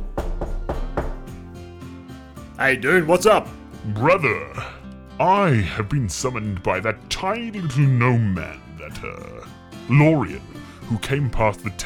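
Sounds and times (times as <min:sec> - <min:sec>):
knocking on a door: 0:00.0 - 0:01.4
speech: 0:02.6 - 0:11.8.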